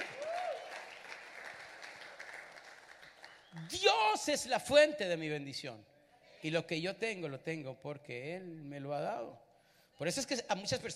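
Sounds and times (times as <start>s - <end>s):
audience applause: 0.0s - 3.6s
speech: 3.6s - 9.4s, 10.0s - 10.9s.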